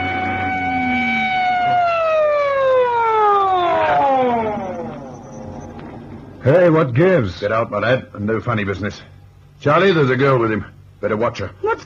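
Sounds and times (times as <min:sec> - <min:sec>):
police car siren pulling a car over: 0:00.0 - 0:06.4
low engine rumble: 0:00.0 - 0:11.0
speech: 0:06.4 - 0:11.8.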